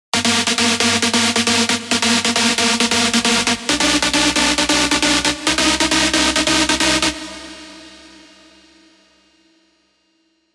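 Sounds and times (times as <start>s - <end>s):
synth stab: 0.2s - 8.9s.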